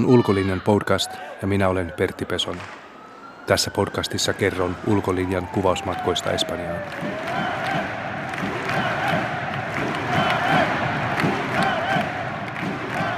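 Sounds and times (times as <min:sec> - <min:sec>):
shouts rising above the crowd: 0:00.0 - 0:01.5, 0:05.9 - 0:09.4, 0:10.0 - 0:10.9, 0:11.5 - 0:12.2, 0:12.9 - 0:13.1
speech: 0:00.0 - 0:02.8, 0:03.5 - 0:07.8
crowd chanting at Catalan polling station: 0:06.9 - 0:13.1.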